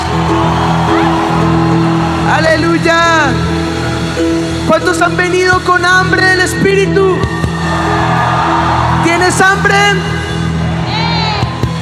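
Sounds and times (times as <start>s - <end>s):
audience applauding and shouting for joy: 0.0s - 5.0s, 6.7s - 11.8s
speech: 4.7s - 8.0s, 9.2s - 10.2s.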